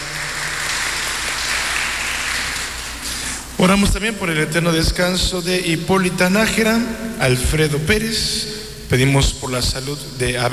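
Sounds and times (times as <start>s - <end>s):
audience applauding in congratulation: 0.0s - 3.6s
speech: 3.6s - 10.5s.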